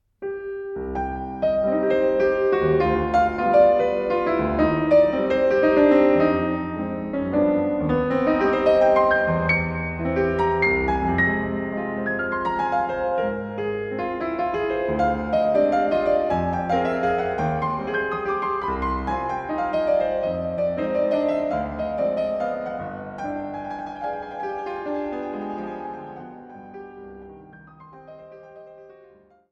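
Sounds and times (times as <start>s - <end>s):
choro waltz music: 0.3s - 29.3s.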